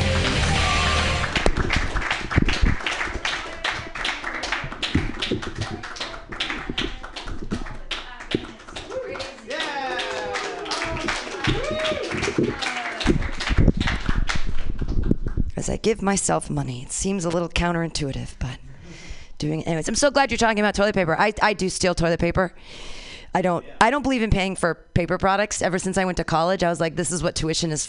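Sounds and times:
audience applause: 0:00.0 - 0:14.8
whoops and cheering voices: 0:08.9 - 0:13.3
speech: 0:15.8 - 0:18.6, 0:19.4 - 0:27.8.

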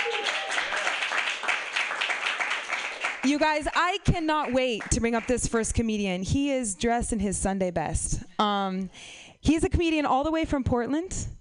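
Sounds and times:
crowd applause: 0:00.0 - 0:03.5
speech: 0:03.2 - 0:11.3.

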